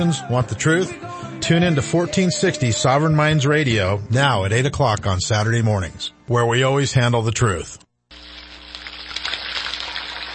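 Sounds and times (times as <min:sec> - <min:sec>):
speech: 0:00.0 - 0:07.8
turkey deep frying in cooking oil: 0:08.1 - 0:10.3.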